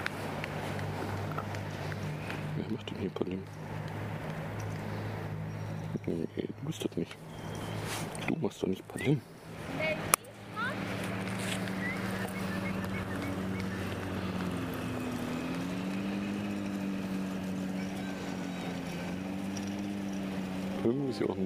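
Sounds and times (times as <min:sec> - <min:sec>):
lawnmower engine droning: 0:00.0 - 0:21.4
speech: 0:03.0 - 0:03.8, 0:06.0 - 0:09.4, 0:21.2 - 0:21.4.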